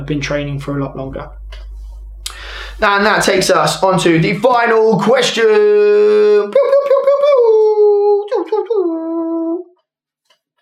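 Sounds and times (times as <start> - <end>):
speech: 0.1 - 1.7, 2.8 - 6.8
voice imitating an air horn: 5.8 - 9.6.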